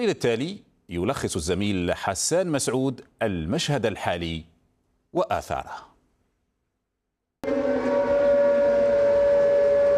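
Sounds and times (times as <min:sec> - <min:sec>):
speech: 0:00.0 - 0:04.5, 0:05.1 - 0:05.9
air raid warning siren: 0:07.4 - 0:09.9.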